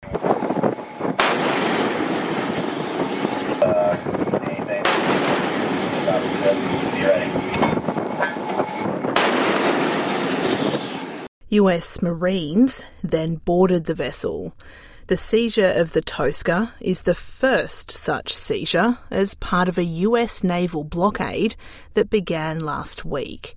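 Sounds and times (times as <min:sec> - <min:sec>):
constant roaring background: 0:00.0 - 0:11.3
5-inch naval gun firing: 0:01.1 - 0:03.6, 0:04.8 - 0:07.6, 0:09.1 - 0:11.2
faint voices: 0:03.4 - 0:05.0, 0:06.0 - 0:07.4
speech: 0:11.5 - 0:23.5.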